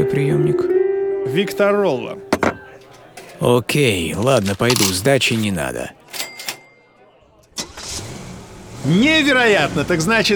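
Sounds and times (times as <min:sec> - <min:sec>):
speech: 0:00.1 - 0:02.2, 0:03.4 - 0:06.0, 0:08.8 - 0:10.3
car engine starting: 0:07.5 - 0:10.3.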